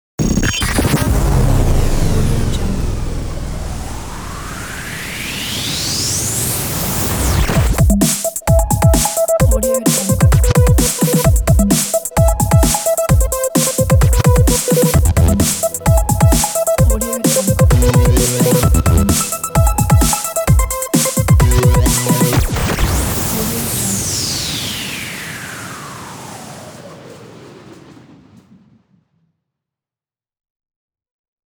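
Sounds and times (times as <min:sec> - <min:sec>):
radio jingle ident: 0:00.2 - 0:25.2.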